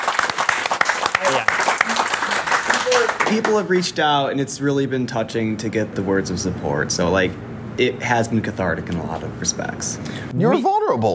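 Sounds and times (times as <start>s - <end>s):
audience applause: 0.0s - 3.9s
person cheering: 1.2s - 3.3s
speech: 3.0s - 11.1s.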